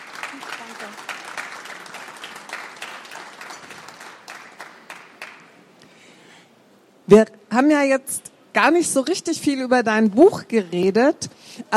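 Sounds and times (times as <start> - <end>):
audience applause: 0.0 - 5.5
speech: 7.1 - 11.7.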